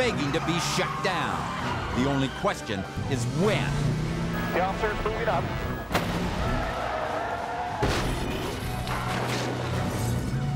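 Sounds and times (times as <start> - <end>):
speech: 0.1 - 4.0, 4.6 - 5.7
car crashing into another car: 5.8 - 6.8, 7.7 - 10.3.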